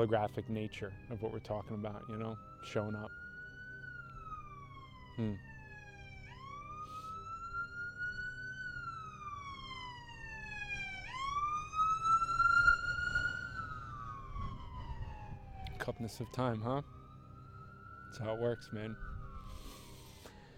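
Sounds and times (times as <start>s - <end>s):
speech: 0.0s - 3.2s, 5.2s - 5.5s, 15.9s - 17.0s, 18.1s - 19.1s
emergency vehicle sirens passing outside: 0.0s - 20.5s.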